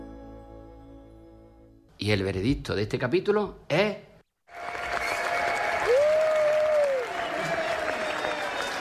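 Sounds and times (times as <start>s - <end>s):
speech: 2.0s - 4.6s
crowd prolonged standing ovation applause: 4.5s - 8.7s.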